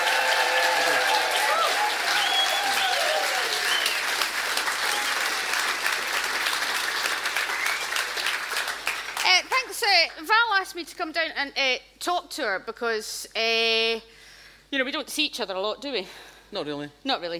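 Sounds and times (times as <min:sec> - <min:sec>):
crowd cheering and whooping: 0:00.0 - 0:05.6
crowd applauding to welcome a guest: 0:00.0 - 0:09.6
speech: 0:10.8 - 0:17.3.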